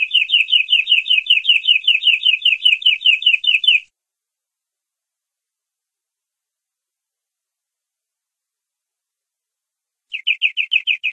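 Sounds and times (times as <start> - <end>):
domestic canary giving long rolling song: 0.0 - 3.9, 10.1 - 11.1.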